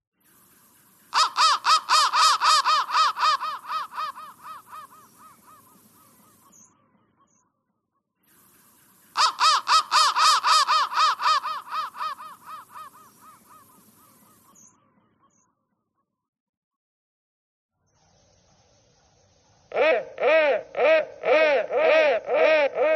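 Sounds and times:
crow cawing: 0:01.2 - 0:05.8, 0:09.2 - 0:13.8, 0:19.7 - 0:22.9.

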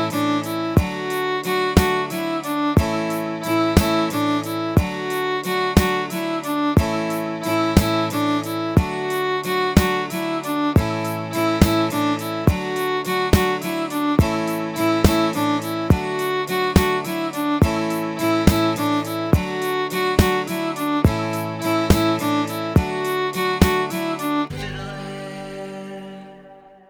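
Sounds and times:
jig tune: 0:00.0 - 0:25.2.

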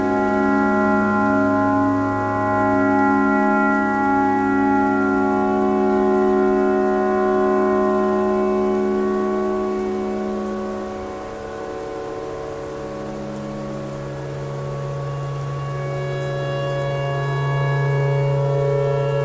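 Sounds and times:
clarinet playing pentatonic notes: 0:00.0 - 0:19.2
tornado siren: 0:00.0 - 0:19.2.

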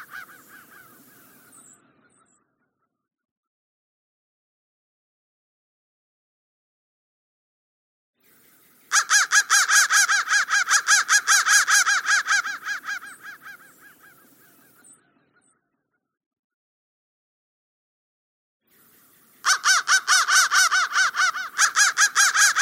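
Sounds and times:
crow cawing: 0:00.0 - 0:02.3, 0:08.9 - 0:14.8, 0:19.4 - 0:22.5.

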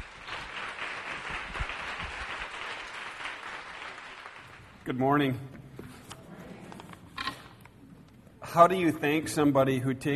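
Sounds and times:
audience applause welcoming a speaker to the stage: 0:00.0 - 0:04.8
speech: 0:04.9 - 0:05.6, 0:08.5 - 0:10.1.

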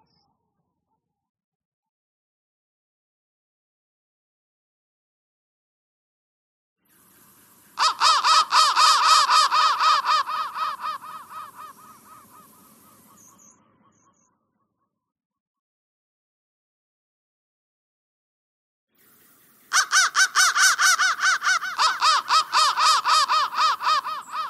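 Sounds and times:
crow: 0:07.8 - 0:14.7, 0:19.7 - 0:24.4.

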